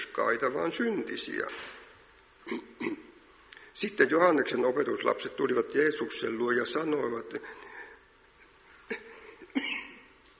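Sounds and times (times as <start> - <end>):
speech: 0.2 - 1.8, 2.5 - 3.1, 3.8 - 7.6
throat-clearing coughs from a tickling throat: 2.4 - 3.2, 8.9 - 10.1.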